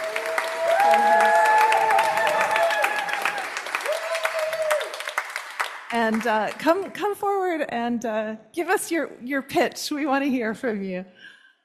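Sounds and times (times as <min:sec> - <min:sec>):
meeting audience applause welcoming a man: 0:00.0 - 0:06.8
speech: 0:06.1 - 0:11.3.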